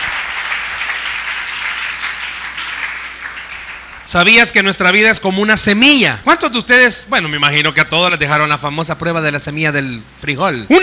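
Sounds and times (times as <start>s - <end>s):
audience applause: 0.0s - 4.3s
speech: 4.1s - 10.8s.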